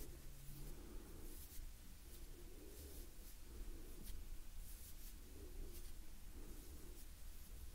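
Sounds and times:
gentle hand movements rustling: 0.0s - 7.6s.

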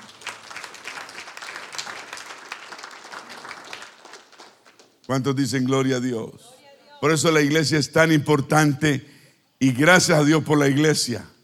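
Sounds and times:
audience applause: 0.0s - 5.1s
speech: 5.1s - 11.4s.

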